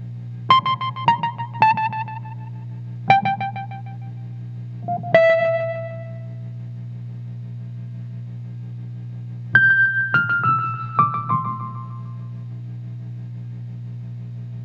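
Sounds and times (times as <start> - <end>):
Wurlitzer: 0.5 - 4.2, 4.9 - 6.4, 9.6 - 12.3.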